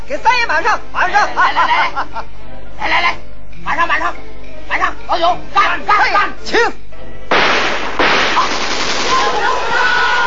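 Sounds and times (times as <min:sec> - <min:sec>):
speech: 0:00.1 - 0:06.9, 0:08.4 - 0:10.1
laughter: 0:01.1 - 0:02.5
machine gun fire in a staged Henan opera battle scene: 0:07.3 - 0:09.5.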